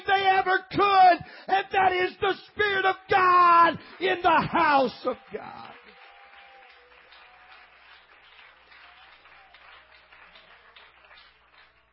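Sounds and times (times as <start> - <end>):
speech: 0.4 - 5.8
audience clapping: 3.2 - 11.9.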